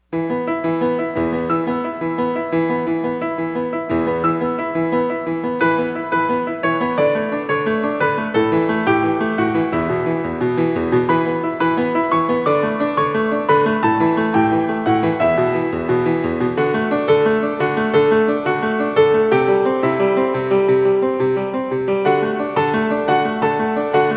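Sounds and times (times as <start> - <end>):
solo piano prelude in E minor: 0.0 - 24.1.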